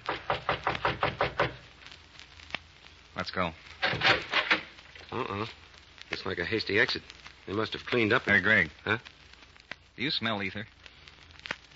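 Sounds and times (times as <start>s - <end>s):
knocks on a door: 0.1s - 1.6s
speech: 3.2s - 4.5s, 5.1s - 9.1s, 10.0s - 10.8s.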